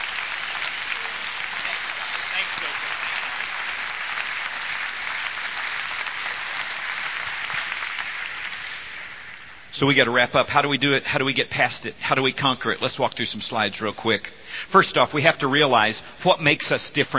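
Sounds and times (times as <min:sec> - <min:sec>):
audience applause: 0:00.0 - 0:09.6
speech: 0:09.8 - 0:17.1.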